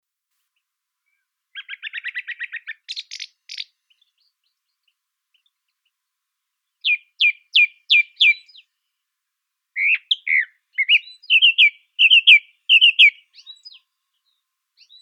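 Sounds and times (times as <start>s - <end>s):
song thrush Turdus philomelos song: 0.3s - 15.0s.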